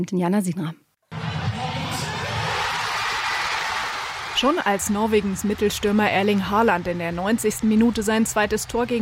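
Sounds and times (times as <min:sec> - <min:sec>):
speech: 0:00.0 - 0:00.8, 0:04.4 - 0:09.0
large crowd of football fans cheering and shouting: 0:01.1 - 0:09.0.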